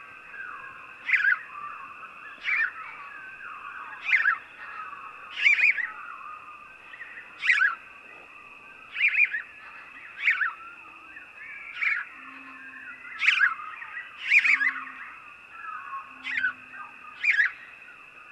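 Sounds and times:
house sparrow uttering sharp emphatic chirps: 0:01.0 - 0:01.4, 0:04.0 - 0:05.9, 0:07.4 - 0:07.8, 0:08.9 - 0:10.6, 0:11.7 - 0:15.0, 0:15.8 - 0:17.7.

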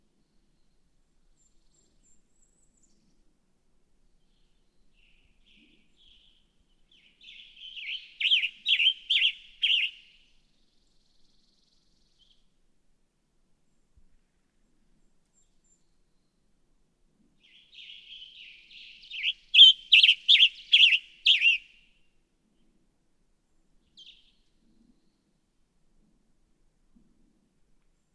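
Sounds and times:
Western Tanager: 0:07.3 - 0:10.1, 0:17.8 - 0:21.8.

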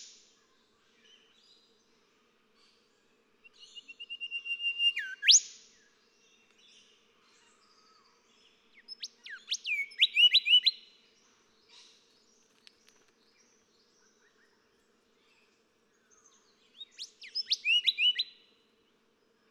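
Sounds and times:
golden whistler singing: 0:03.8 - 0:05.5, 0:09.2 - 0:10.8, 0:17.0 - 0:18.3.

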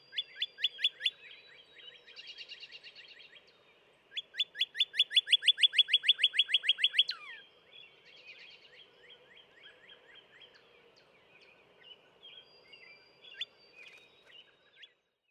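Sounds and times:
Northern cardinal song of bright down-slurred whistles: 0:00.0 - 0:03.3, 0:04.1 - 0:08.6, 0:12.2 - 0:15.0
faint background chirps: 0:00.0 - 0:15.2.

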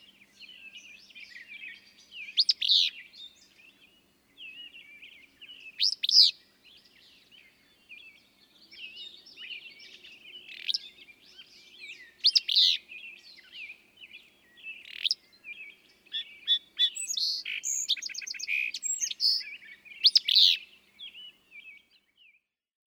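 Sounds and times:
willow flycatcher calling: 0:02.2 - 0:03.1, 0:05.5 - 0:06.4, 0:08.9 - 0:21.2.

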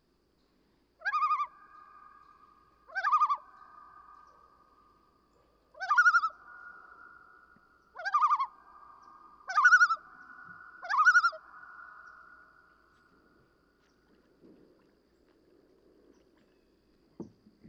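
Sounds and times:
common loon tremolo calls: 0:01.0 - 0:13.5
faint knock: 0:17.2 - 0:17.6.

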